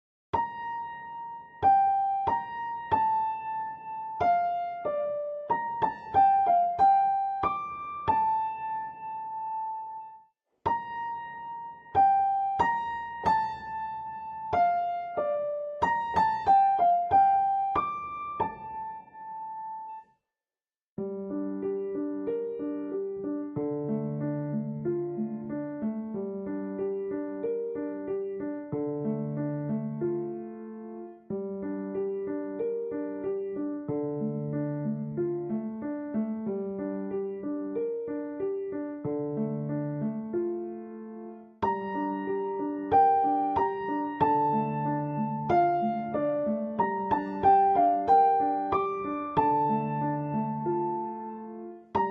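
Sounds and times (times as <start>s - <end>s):
piano: 0.3s - 20.2s, 21.0s - 52.0s.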